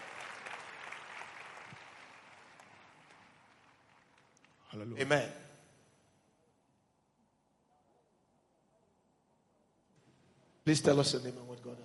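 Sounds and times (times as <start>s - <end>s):
audience clapping: 0.0s - 4.9s
speech: 4.7s - 5.4s, 10.6s - 11.8s.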